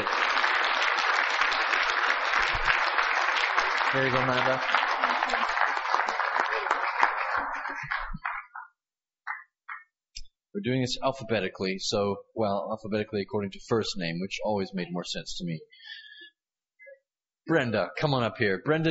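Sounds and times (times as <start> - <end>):
audience applause: 0.0 - 8.6
speech: 3.9 - 5.4, 10.6 - 15.8, 17.5 - 18.8.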